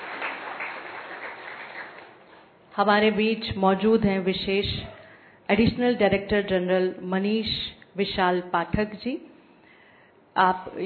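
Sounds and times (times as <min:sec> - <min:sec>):
audience applause for a speaker at a spiritual university event: 0:00.0 - 0:02.3
speech: 0:02.8 - 0:09.3, 0:10.4 - 0:10.8.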